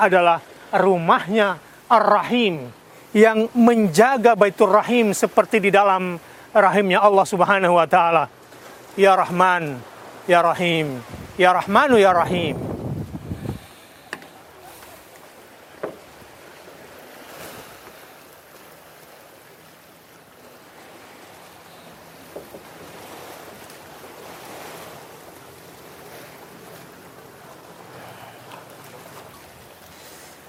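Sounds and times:
speech: 0.0 - 8.4, 9.0 - 12.7
sea waves washing at Banda Aceh: 0.0 - 30.4
wind buffeting the microphone: 11.0 - 13.8.

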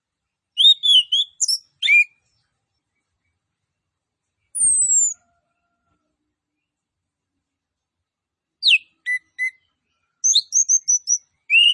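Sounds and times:
orange-headed thrush singing fast high twisting whistles and chattering notes: 0.6 - 2.1, 4.5 - 5.2, 8.6 - 9.6, 10.2 - 11.7.

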